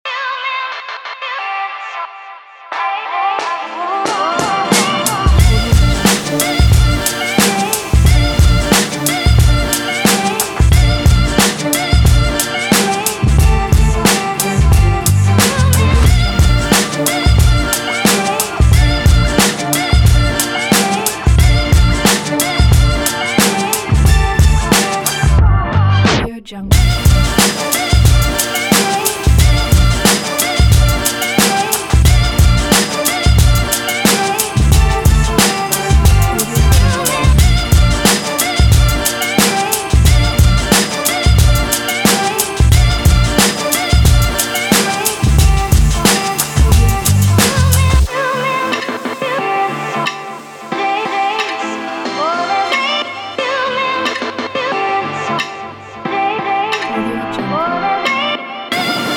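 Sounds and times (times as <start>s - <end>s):
hip hop music: 0.1s - 59.1s.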